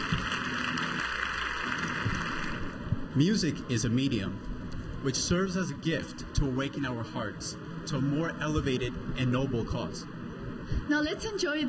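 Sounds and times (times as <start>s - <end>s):
audience applause for the guest: 0.0s - 2.8s
speech: 3.2s - 11.6s.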